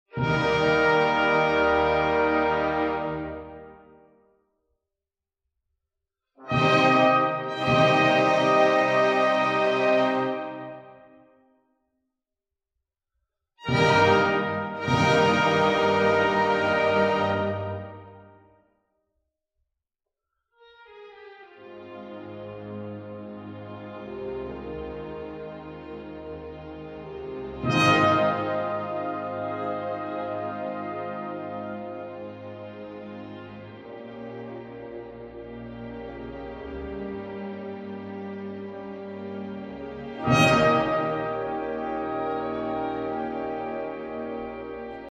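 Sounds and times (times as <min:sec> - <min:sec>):
overture: 0:00.1 - 0:04.2, 0:06.4 - 0:11.2, 0:13.6 - 0:18.4, 0:21.4 - 0:45.0.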